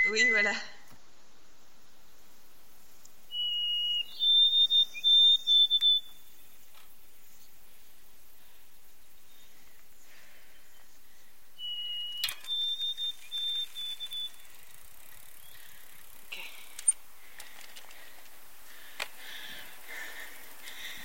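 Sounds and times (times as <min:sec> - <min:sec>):
person whistling an imitation of a bird call: 0:00.0 - 0:00.5, 0:03.3 - 0:06.1, 0:11.6 - 0:14.4.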